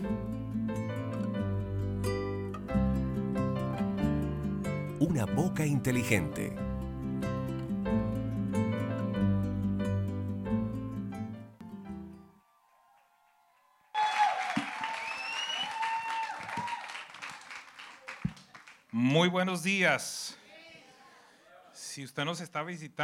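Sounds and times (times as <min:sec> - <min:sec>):
organ-like music: 0:00.0 - 0:12.2
speech: 0:05.0 - 0:06.7, 0:19.3 - 0:20.4, 0:22.0 - 0:23.0
cheering voices: 0:12.3 - 0:18.3
audience applause: 0:12.4 - 0:18.9.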